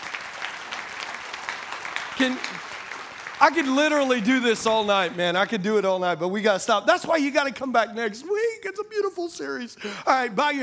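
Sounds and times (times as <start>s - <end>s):
audience clapping: 0.0s - 6.0s
speech: 2.2s - 2.8s, 3.4s - 10.6s.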